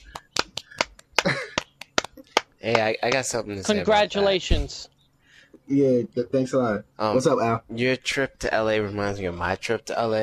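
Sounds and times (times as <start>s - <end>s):
hand clapping: 0.0s - 3.8s
speech: 2.6s - 5.0s, 5.7s - 10.2s.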